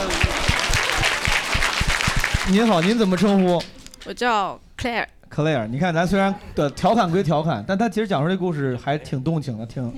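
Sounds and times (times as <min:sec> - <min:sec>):
audience applause: 0:00.0 - 0:03.7
speech: 0:02.5 - 0:09.9.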